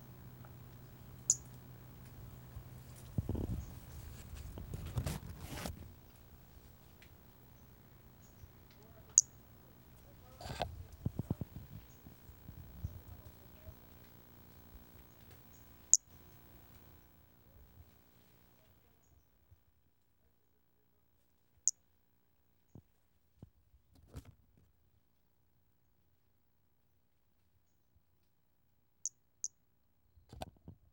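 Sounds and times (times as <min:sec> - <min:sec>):
Brachycephalus albolineatus calling: 0:00.0 - 0:17.0.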